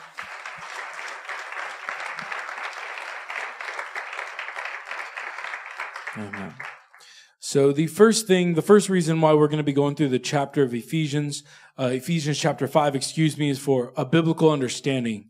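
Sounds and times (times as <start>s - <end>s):
audience applause: 0.0s - 7.2s
speech: 6.2s - 6.7s, 7.5s - 15.2s.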